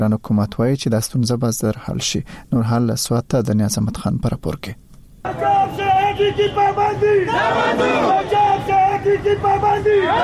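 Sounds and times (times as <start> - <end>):
speech: 0.0 - 5.5, 6.2 - 10.2
protest crowd of shopkeepers and flour dealers in Swat chanting slogans: 5.3 - 10.2.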